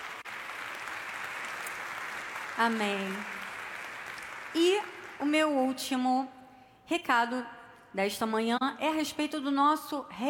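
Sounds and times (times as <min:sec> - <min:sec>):
church congregation clapping during a worship service: 0:00.0 - 0:05.6
speech: 0:02.6 - 0:03.4, 0:04.5 - 0:10.2.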